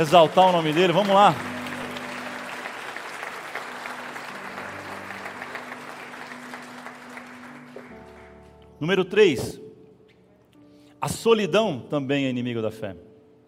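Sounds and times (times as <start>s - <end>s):
speech: 0.0s - 1.5s, 8.8s - 9.6s, 11.0s - 13.1s
audience clapping: 0.0s - 8.6s.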